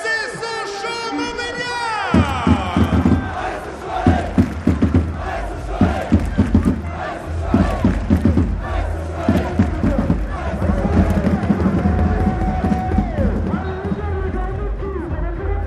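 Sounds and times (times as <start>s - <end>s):
large stadium crowd roaring and cheering: 0.0s - 15.6s
crowd whistling: 0.6s - 14.3s
rhythmic clapping: 2.1s - 15.6s.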